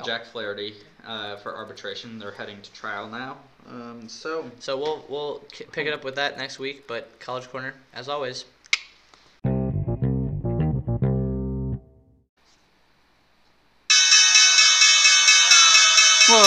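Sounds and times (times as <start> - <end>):
speech: 0.0 - 8.6
low punchy synth notes: 9.4 - 12.2
loud bright closing bell ringing: 13.9 - 16.4.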